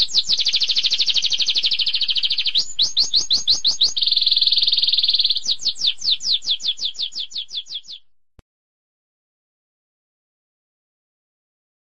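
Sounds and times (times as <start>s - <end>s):
high-pitched rapid buzzy bird trills: 0.0s - 8.0s.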